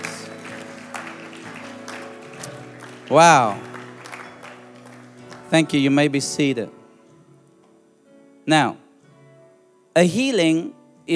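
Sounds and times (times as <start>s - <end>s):
audience clapping: 0.0s - 6.4s
speech: 3.1s - 3.7s, 5.5s - 6.8s, 8.5s - 8.8s, 10.0s - 11.1s.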